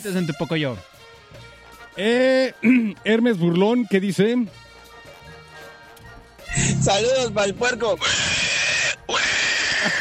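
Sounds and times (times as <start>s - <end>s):
speech: 0.0s - 4.6s, 6.6s - 8.5s
sound effect of an animal screeching as its tail is stepped on: 8.0s - 9.9s.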